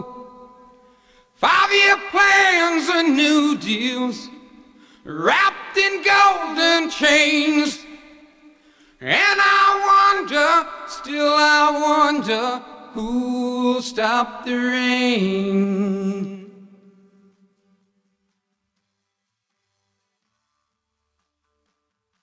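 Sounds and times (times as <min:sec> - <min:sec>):
person singing: 0:00.0 - 0:00.8, 0:01.4 - 0:08.1, 0:09.0 - 0:17.1.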